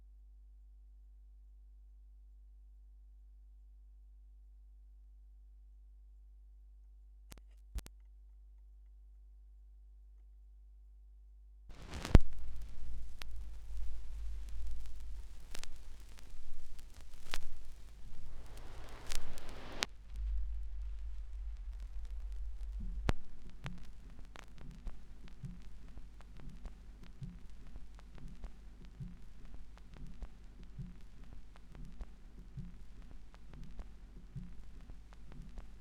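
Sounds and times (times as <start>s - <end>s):
vinyl record noise: 11.7s - 35.8s.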